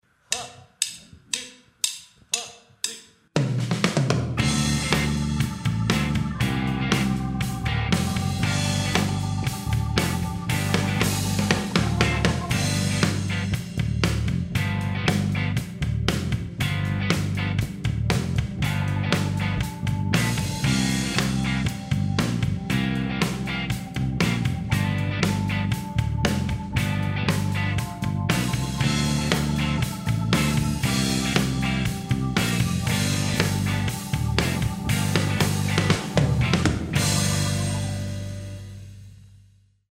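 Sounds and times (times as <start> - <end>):
blues rock in G: 3.6 - 39.1
laughter: 33.8 - 38.6.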